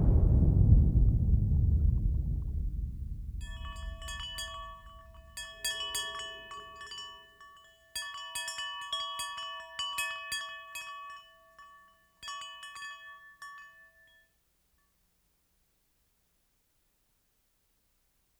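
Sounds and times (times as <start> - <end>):
rainstorm: 0.0 - 5.4.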